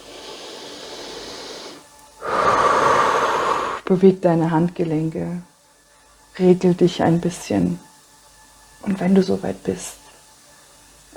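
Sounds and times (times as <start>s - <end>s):
slow deep breathing during a guided relaxation: 0.0s - 3.9s
speech: 3.9s - 5.5s, 6.4s - 7.9s, 8.8s - 10.0s.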